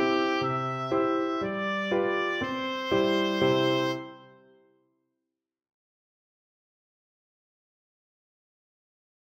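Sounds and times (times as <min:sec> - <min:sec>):
oboe playing a nursery rhyme: 0:00.0 - 0:04.5.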